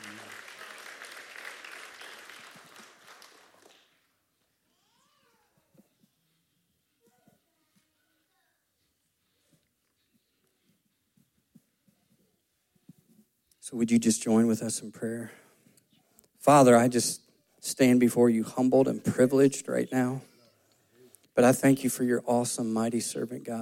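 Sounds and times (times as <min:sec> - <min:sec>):
audience applause: 0:00.0 - 0:04.1
speech: 0:13.6 - 0:15.4, 0:16.4 - 0:20.3, 0:21.4 - 0:23.6.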